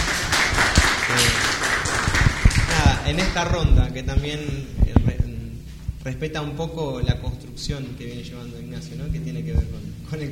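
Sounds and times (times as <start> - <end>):
audience applause welcoming a speaker at a talk on the Church and dictatorship: 0.0 - 3.4
speech: 3.1 - 5.2, 6.0 - 10.3.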